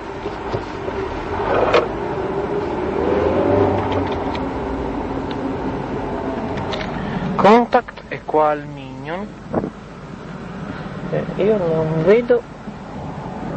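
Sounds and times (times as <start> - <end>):
road noise: 0.0 - 13.5
car engine revving while driving: 0.2 - 7.6
speech: 8.4 - 9.5, 11.4 - 12.5.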